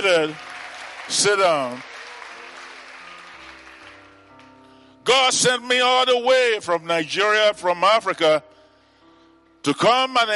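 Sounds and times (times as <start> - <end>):
speech: 0.0 - 0.5, 1.1 - 1.9, 5.0 - 8.5, 9.6 - 10.3
people clapping: 0.0 - 4.6.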